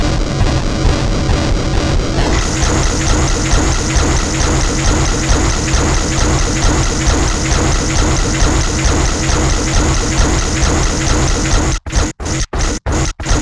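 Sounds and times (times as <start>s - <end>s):
industrial electrical hum: 0.2s - 13.3s.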